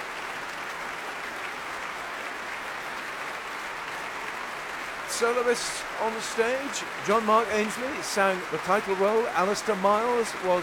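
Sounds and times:
concert audience applause: 0.0s - 10.6s
speech: 5.2s - 10.6s.

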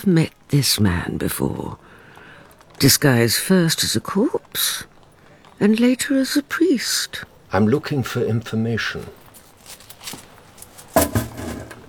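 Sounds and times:
speech: 0.0s - 1.9s, 2.8s - 4.9s, 5.6s - 9.2s
coins dropping on the floor: 9.3s - 11.8s.

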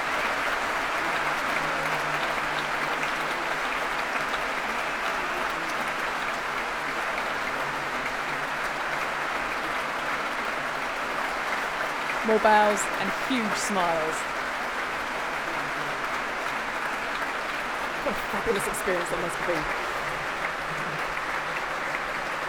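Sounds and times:
concert audience applause: 0.0s - 22.4s
speech: 12.3s - 14.4s, 18.5s - 19.8s.

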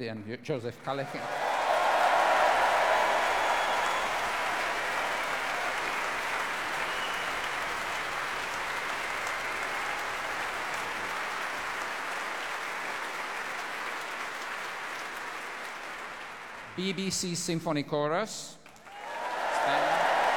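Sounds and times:
speech: 0.0s - 1.5s, 16.8s - 18.6s
audience applause: 0.9s - 17.1s, 18.7s - 20.3s.

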